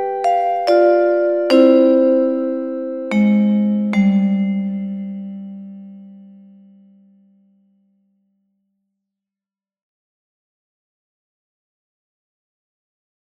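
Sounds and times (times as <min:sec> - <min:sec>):
vibraphone: 0:00.0 - 0:07.3.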